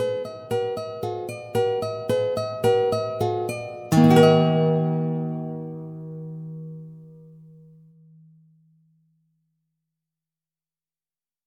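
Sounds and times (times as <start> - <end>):
allegro music without guitar: 0.0 - 7.3.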